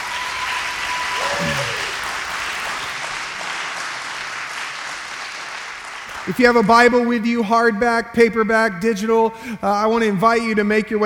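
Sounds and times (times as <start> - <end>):
church congregation applauding to welcome newcomers: 0.0 - 6.8
speech: 6.3 - 11.0.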